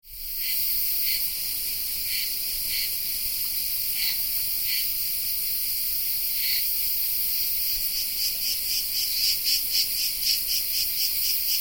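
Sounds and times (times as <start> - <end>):
Tettigia cicada song in the Peloponnese in the morning: 0.1 - 11.5.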